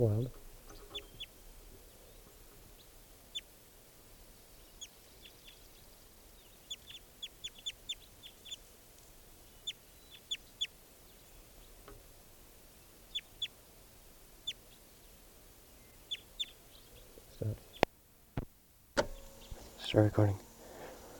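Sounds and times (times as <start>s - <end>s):
speech: 0.0s - 0.4s, 20.0s - 20.5s
male bird calling: 0.0s - 3.5s, 4.6s - 8.6s, 9.4s - 11.8s, 12.9s - 13.6s, 14.4s - 17.9s, 19.0s - 21.1s.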